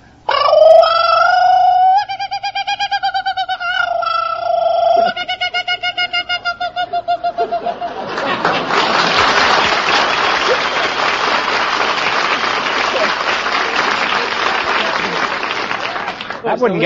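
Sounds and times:
person imitating a kookaburra call: 0.2s - 7.8s
laughter: 4.9s - 16.8s.

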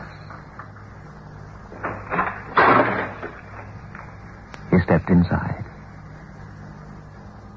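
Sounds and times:
door being opened: 1.7s - 4.2s
speech: 4.9s - 5.7s.

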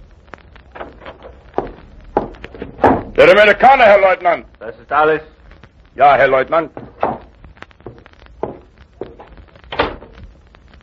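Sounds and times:
knocking on the door of a small house: 2.2s - 3.1s
speech: 3.2s - 5.4s, 6.0s - 6.8s.

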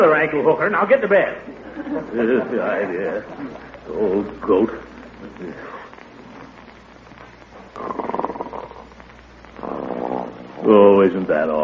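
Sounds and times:
speech: 0.0s - 5.8s, 7.8s - 8.1s, 10.6s - 11.6s
laughter: 1.4s - 3.7s
snoring: 7.8s - 8.9s, 9.6s - 10.7s.

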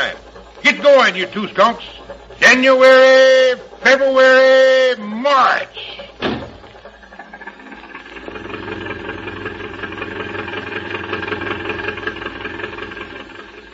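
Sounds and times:
car engine running while driving: 0.0s - 13.7s
faint rattling vibration: 0.0s - 13.7s
speech: 0.8s - 6.4s.

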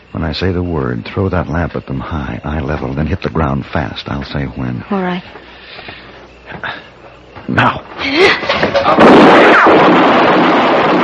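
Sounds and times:
speech: 0.2s - 6.7s, 7.5s - 10.6s
gunshot in a drama: 8.7s - 11.0s.

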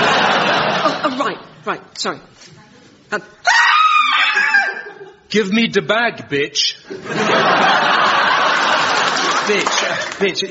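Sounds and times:
laughter: 0.0s - 1.4s, 4.4s - 5.3s, 6.9s - 10.4s
speech: 1.6s - 3.7s, 5.3s - 8.1s, 9.2s - 10.4s
acted scream of a woman accosted by a knife-wielding robber: 3.4s - 5.0s.

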